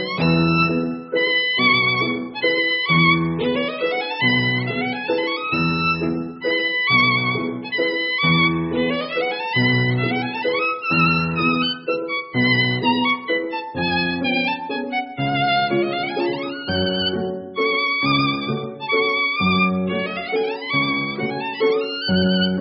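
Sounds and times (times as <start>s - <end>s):
violin: 0.0s - 22.5s.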